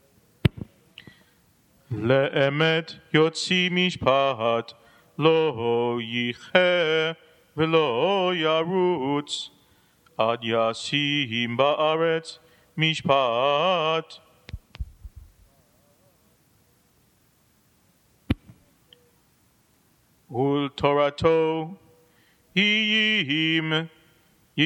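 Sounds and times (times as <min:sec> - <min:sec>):
person chanting the haftarah: 0:01.8 - 0:09.6, 0:10.2 - 0:14.3, 0:20.3 - 0:24.0.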